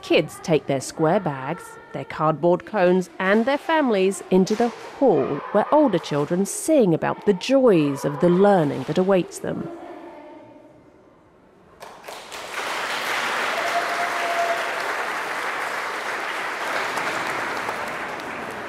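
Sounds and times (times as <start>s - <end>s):
speech: 0.0s - 9.8s
audience applause in a school hall: 11.8s - 18.6s.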